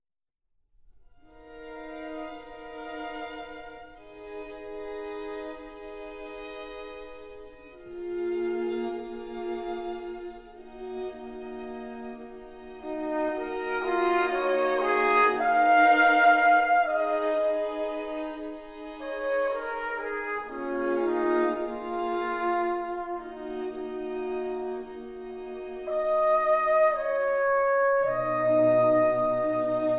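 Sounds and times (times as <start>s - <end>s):
trumpet and string quintet playing a slow movement: 1.3s - 29.9s.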